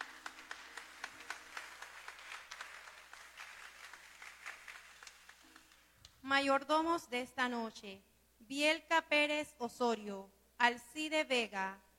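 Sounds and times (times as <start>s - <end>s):
audience applause: 0.0s - 5.9s
speech: 6.3s - 11.8s.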